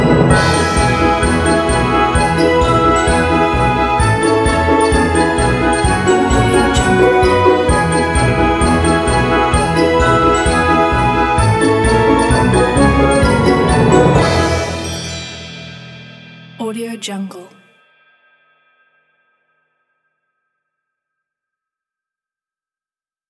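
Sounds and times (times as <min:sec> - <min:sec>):
Christmas song: 0:00.0 - 0:15.5, 0:16.6 - 0:17.6.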